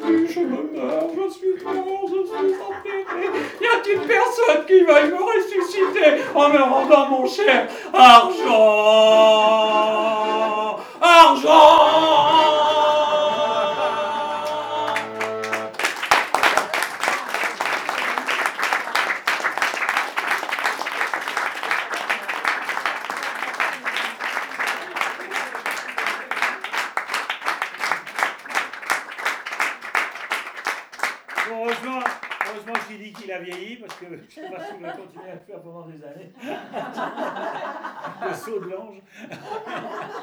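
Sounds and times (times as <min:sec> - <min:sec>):
laughter: 0:00.0 - 0:26.8, 0:34.0 - 0:35.6, 0:36.3 - 0:40.2
crowd applauding at a live concert: 0:00.0 - 0:34.1
speech: 0:00.1 - 0:10.3, 0:36.0 - 0:40.2
musical tone: 0:08.0 - 0:16.0.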